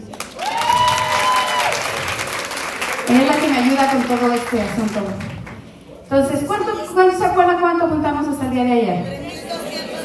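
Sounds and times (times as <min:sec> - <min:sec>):
audience applause at a community gathering: 0:00.0 - 0:05.6
speech: 0:03.1 - 0:05.4, 0:06.1 - 0:09.2.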